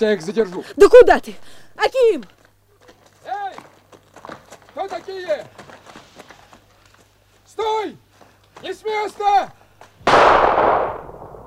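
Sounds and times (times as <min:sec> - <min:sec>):
speech: 0:00.0 - 0:02.4, 0:04.8 - 0:05.8, 0:07.6 - 0:08.0, 0:08.6 - 0:09.6
gunshot fired into the air as a radio drama effect: 0:10.0 - 0:11.4.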